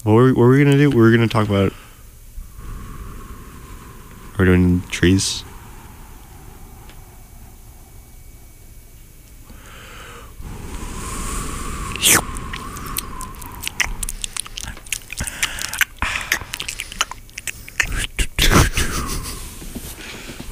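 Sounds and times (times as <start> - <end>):
speech: 0.0 - 1.8, 4.4 - 5.5, 12.0 - 12.2
wet clicking, smacking and snorting mouth noises imitating a horse: 12.9 - 18.9.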